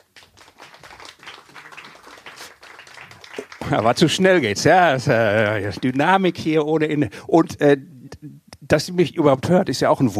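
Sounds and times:
applause: 0.0 - 4.5
speech: 3.7 - 10.1.

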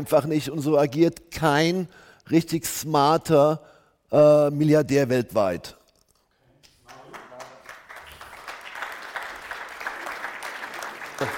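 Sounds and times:
speech: 0.0 - 5.8, 11.2 - 11.3
a few people clapping: 6.6 - 11.3.

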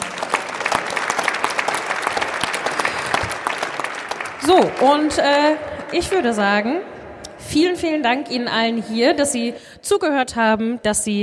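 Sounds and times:
audience applause for the winner: 0.0 - 6.7
speech: 4.4 - 11.2.

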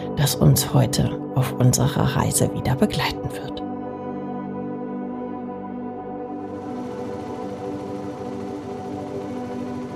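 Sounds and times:
speech: 0.2 - 3.6
humming tuk-tuk engine: 6.5 - 9.9.

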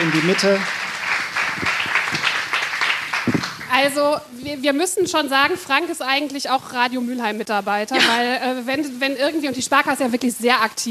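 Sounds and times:
audience clapping for a guest at a local radio event: 0.0 - 4.2
speech: 0.1 - 0.8, 3.8 - 10.8.

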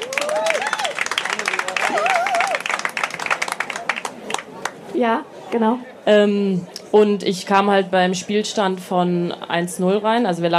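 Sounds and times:
audience applause: 0.0 - 4.8
speech: 5.0 - 10.5.

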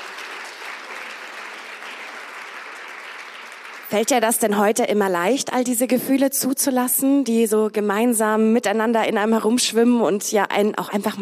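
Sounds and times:
audience applause: 0.0 - 4.4
speech: 3.9 - 11.1.

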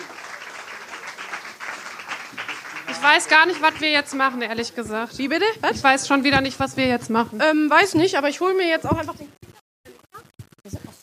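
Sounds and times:
audience applause at a Christmas game event: 0.0 - 7.0
speech: 3.0 - 9.4.

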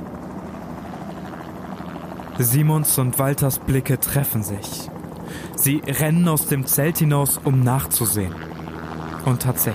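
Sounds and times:
distant helicopter rotors rattling: 0.0 - 9.7
speech: 2.4 - 8.6, 9.2 - 9.7.

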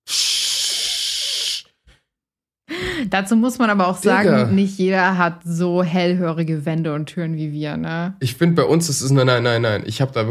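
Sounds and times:
voice imitating urine stream into toilet bowl: 0.0 - 1.7
speech: 3.0 - 10.2.

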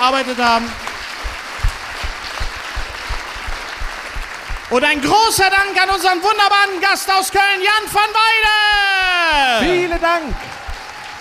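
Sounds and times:
speech: 0.0 - 0.8, 4.7 - 10.5
audience clapping: 0.0 - 6.2, 8.0 - 11.1.

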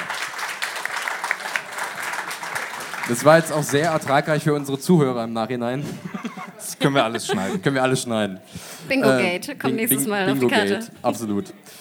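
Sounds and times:
small round of applause: 0.0 - 4.8
speech: 3.1 - 11.6
laughter: 5.7 - 11.4.

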